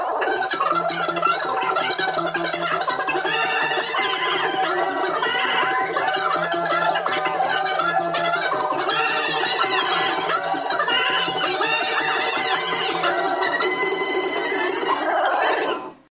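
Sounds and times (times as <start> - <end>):
chanting: 0.2 - 15.9.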